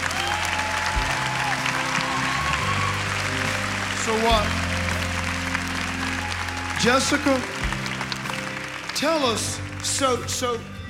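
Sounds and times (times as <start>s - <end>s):
church congregation clapping: 0.0s - 10.7s
speech: 4.1s - 4.6s, 6.8s - 7.5s, 9.0s - 10.7s.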